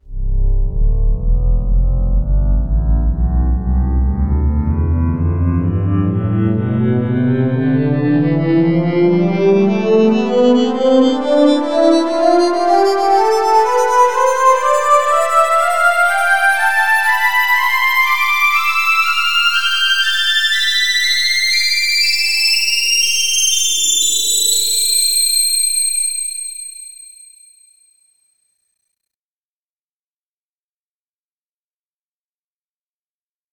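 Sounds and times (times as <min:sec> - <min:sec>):
metallic synth pad scale: 0:00.1 - 0:26.2.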